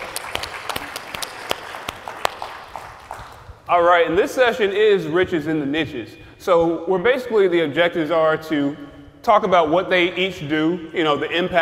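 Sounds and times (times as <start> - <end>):
audience applause: 0.0 - 3.6
speech: 3.7 - 11.6.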